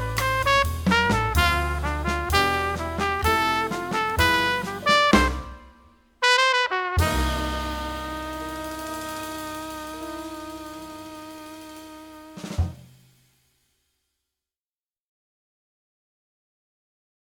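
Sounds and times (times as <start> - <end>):
jazz music: 0.0 - 13.2.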